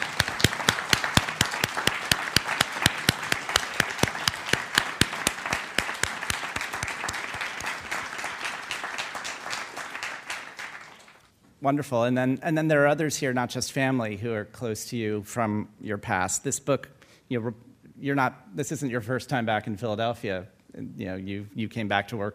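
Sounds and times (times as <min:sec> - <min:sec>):
audience applause: 0:00.0 - 0:11.3
speech: 0:11.6 - 0:22.3.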